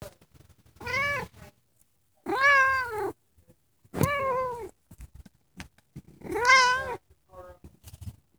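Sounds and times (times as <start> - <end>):
cat meowing: 0.8 - 1.3, 2.3 - 3.1, 4.0 - 4.7, 6.3 - 7.0.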